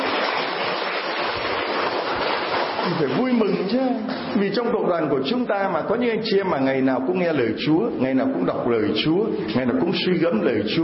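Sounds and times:
audience applauding loudly: 0.0 - 4.4
speech: 2.9 - 10.8.

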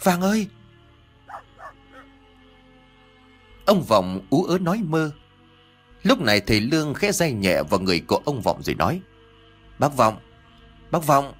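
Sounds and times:
speech: 0.0 - 0.6, 3.7 - 5.2, 6.0 - 9.1, 9.8 - 10.3, 10.9 - 11.3
dog barking while scratching the ground under a mango tree: 1.3 - 2.1.

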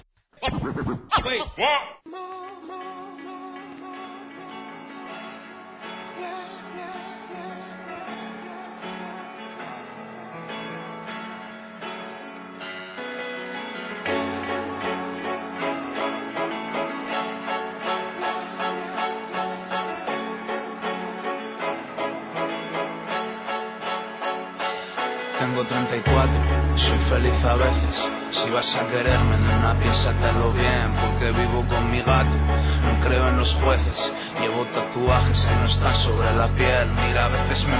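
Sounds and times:
short scratchy burst: 0.0 - 2.0
speech: 0.7 - 2.8, 25.6 - 37.7
Spanish rap track: 13.6 - 37.7.

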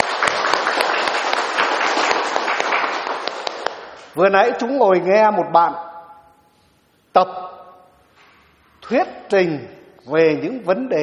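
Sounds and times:
round of applause from many hands: 0.0 - 3.9
speech: 4.2 - 5.9, 7.2 - 7.4, 8.9 - 11.0.

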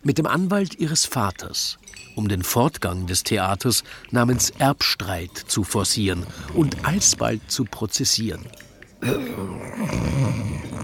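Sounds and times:
speech: 0.0 - 10.4
vicar snoring on a corner bench after a soup meal: 6.0 - 7.6, 9.0 - 10.8.

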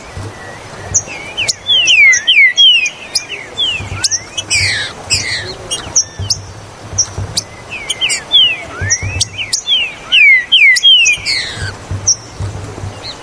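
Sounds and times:
Green-winged saltator song of loud down-slurred whistles: 0.0 - 13.2.

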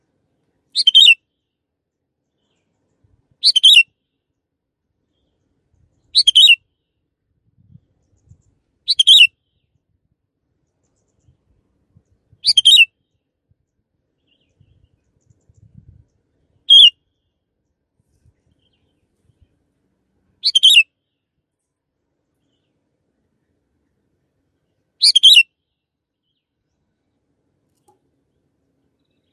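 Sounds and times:
canary chirping: 0.8 - 1.2, 3.4 - 3.8, 6.1 - 6.6, 8.9 - 9.3, 12.4 - 12.9, 16.7 - 16.9, 20.4 - 20.8, 25.0 - 25.4.

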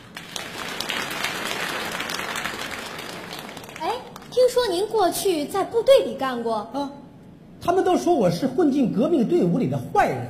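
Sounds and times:
audience applause welcoming performers: 0.0 - 4.3
speech: 4.4 - 7.0, 7.6 - 10.2.

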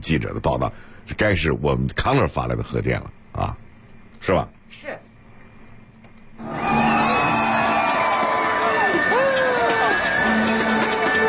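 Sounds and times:
speech: 0.0 - 3.6, 4.2 - 5.0
basketball arena crowd cheering: 6.4 - 11.2.

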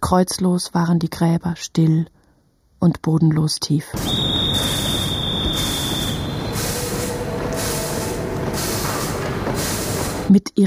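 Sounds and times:
speech: 0.1 - 2.2, 2.8 - 5.0, 10.3 - 10.6
airy hiss: 4.0 - 10.3
train wheel squeal: 4.0 - 10.3
trains rumbling through a busy station with a high reception hall: 4.0 - 10.4.

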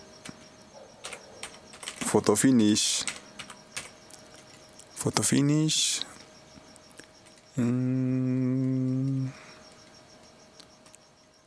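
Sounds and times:
fingers typing on a computer keyboard: 0.2 - 4.8
speech: 2.1 - 3.2, 5.0 - 6.1, 7.6 - 9.4.

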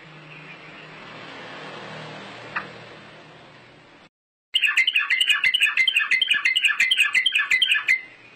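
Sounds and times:
bird chirping: 0.1 - 1.2, 4.6 - 8.3.

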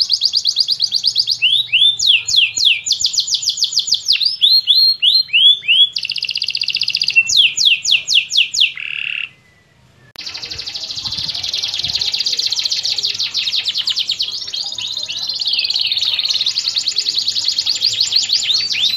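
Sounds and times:
champion canary song: 0.0 - 18.9.

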